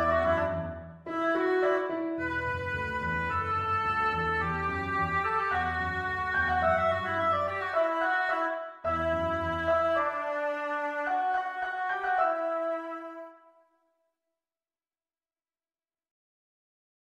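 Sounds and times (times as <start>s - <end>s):
oboe playing: 0.0s - 13.5s.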